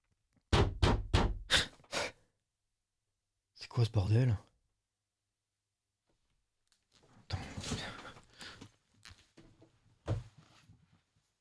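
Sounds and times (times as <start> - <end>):
knocking on a door: 0.5 - 1.5
speech: 3.6 - 4.5.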